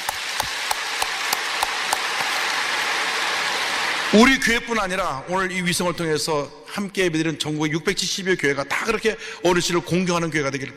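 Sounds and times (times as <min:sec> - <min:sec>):
audience clapping: 0:00.0 - 0:04.3
speech: 0:04.1 - 0:10.7.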